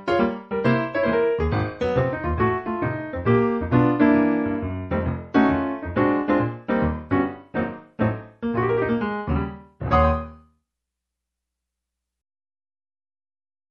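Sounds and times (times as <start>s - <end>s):
early jazz music: 0.0s - 10.5s.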